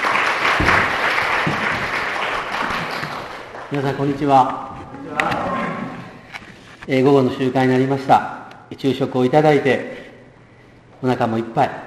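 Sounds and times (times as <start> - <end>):
audience applause welcoming speaker: 0.0 - 4.0
speech: 3.7 - 5.5, 6.9 - 10.0, 11.0 - 11.8.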